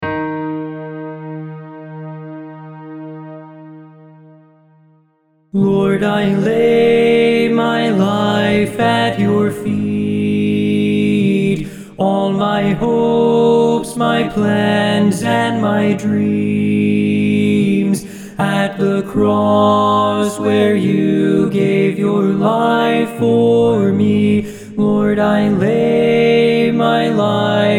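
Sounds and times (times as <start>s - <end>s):
tenor singing: 5.6s - 27.7s.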